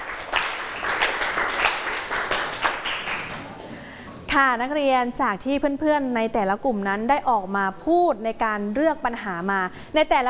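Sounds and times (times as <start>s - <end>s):
classroom students clapping: 0.0s - 3.7s
speech: 4.4s - 10.2s.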